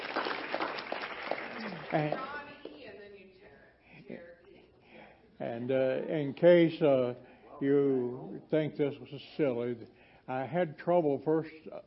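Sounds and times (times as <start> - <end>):
crowd applauding: 0.0 - 2.7
speech: 1.9 - 2.3, 5.4 - 11.8.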